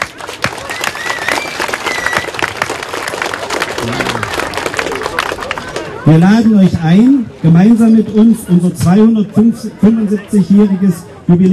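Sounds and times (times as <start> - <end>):
audience applause: 0.0 - 6.0
speech: 6.1 - 11.5.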